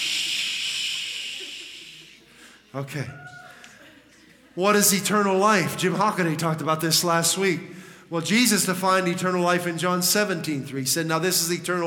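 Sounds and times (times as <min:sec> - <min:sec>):
aerosol spray can hissing: 0:00.0 - 0:02.2
speech: 0:02.7 - 0:03.4, 0:04.6 - 0:11.8.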